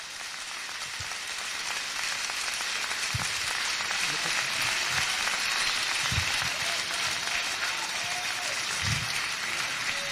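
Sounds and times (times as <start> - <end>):
people clapping: 0.0 - 10.0.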